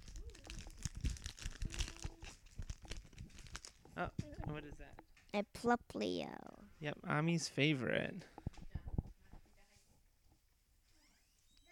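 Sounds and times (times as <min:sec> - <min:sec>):
card pack wrappers crunching as they are opened: 0:00.0 - 0:04.1
speech: 0:04.0 - 0:08.3.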